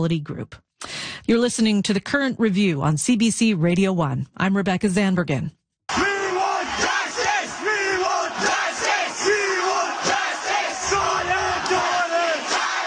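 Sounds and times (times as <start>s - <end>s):
speech: 0.0s - 0.7s, 1.3s - 5.6s
crowd of student protesters shouting and chanting: 5.9s - 12.8s.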